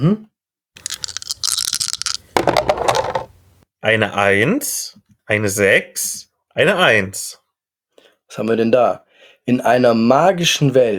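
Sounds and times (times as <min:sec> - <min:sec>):
speech: 0:00.0 - 0:00.3, 0:03.9 - 0:07.4, 0:08.3 - 0:10.9
three dice rattling: 0:00.8 - 0:03.3.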